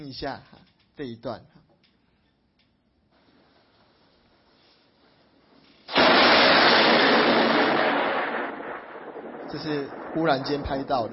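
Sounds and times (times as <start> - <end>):
speech: 0.1 - 1.6, 9.5 - 11.1
thunder: 5.9 - 11.1.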